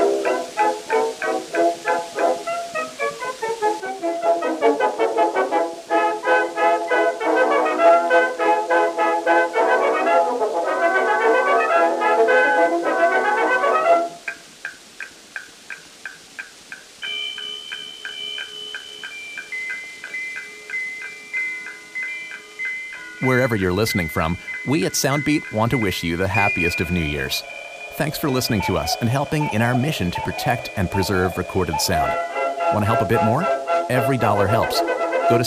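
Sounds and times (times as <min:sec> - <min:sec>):
1917 band brass and woodwinds on Edison wax cylinder: 0:00.0 - 0:14.2, 0:23.3 - 0:35.4
high bell-like chiming tones: 0:16.7 - 0:35.4
speech: 0:23.5 - 0:35.4.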